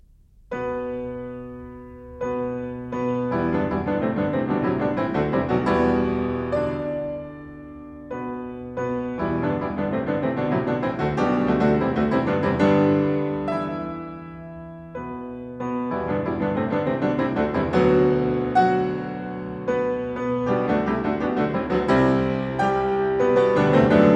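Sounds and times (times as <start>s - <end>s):
piano prelude in E minor: 0.0s - 24.1s.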